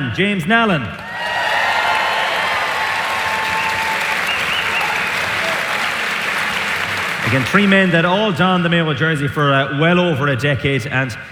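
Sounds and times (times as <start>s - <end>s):
speech: 0.1s - 1.4s, 7.3s - 11.2s
audience round of applause: 1.0s - 8.6s.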